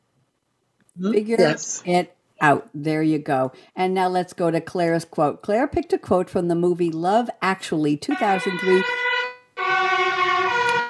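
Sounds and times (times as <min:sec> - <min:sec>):
speech: 0:01.0 - 0:09.0
fire engine siren: 0:08.1 - 0:10.8.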